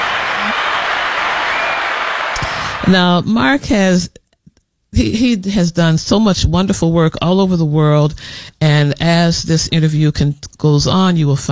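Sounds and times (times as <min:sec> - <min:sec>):
audience applause welcoming a guest: 0:00.0 - 0:02.9
speech: 0:02.9 - 0:04.2, 0:04.9 - 0:11.5.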